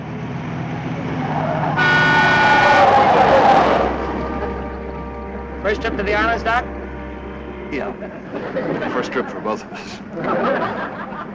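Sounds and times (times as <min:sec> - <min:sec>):
car pulling out engine rumble: 0:00.0 - 0:11.3
car horn blaring: 0:01.8 - 0:09.6
laughter: 0:03.5 - 0:05.1, 0:07.8 - 0:11.3
speech: 0:05.7 - 0:06.8, 0:07.7 - 0:11.3.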